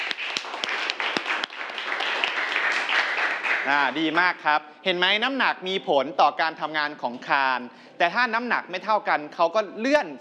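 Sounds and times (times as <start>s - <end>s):
students applauding: 0.0s - 4.2s
speech: 3.7s - 10.1s.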